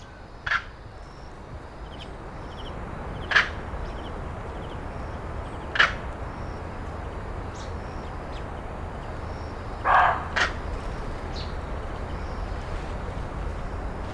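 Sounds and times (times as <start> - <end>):
Taiwan blue magpie in Zhiben, Taitung: 0.0 - 14.0.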